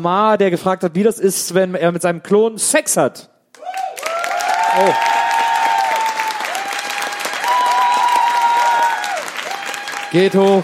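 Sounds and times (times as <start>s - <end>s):
speech: 0.0s - 3.3s, 4.7s - 5.1s, 10.1s - 10.6s
live audience applause: 3.6s - 10.6s.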